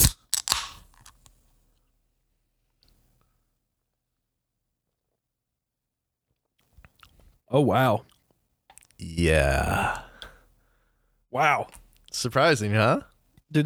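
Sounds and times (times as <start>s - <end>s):
drink can snapping open and fizzing: 0.0s - 1.3s
speech: 7.5s - 8.1s, 9.0s - 10.0s, 11.3s - 13.6s.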